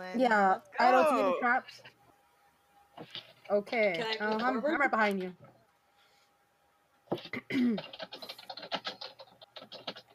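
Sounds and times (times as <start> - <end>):
speech: 0.0 - 2.0, 3.0 - 5.5, 7.2 - 8.3
fingers typing on a computer keyboard: 7.1 - 10.1.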